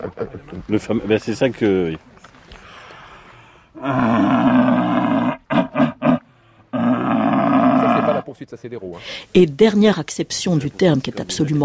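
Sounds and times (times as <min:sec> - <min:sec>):
speech: 0:00.0 - 0:02.1, 0:03.8 - 0:04.3, 0:08.4 - 0:11.6
red deer stag bellowing during the rut: 0:03.8 - 0:08.3.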